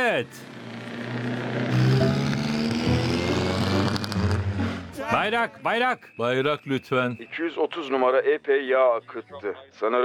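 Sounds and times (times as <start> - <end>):
speech: 0.2 - 1.7, 5.1 - 10.0
Austin 7 racing car engine passing at full throttle during a race: 0.4 - 5.0.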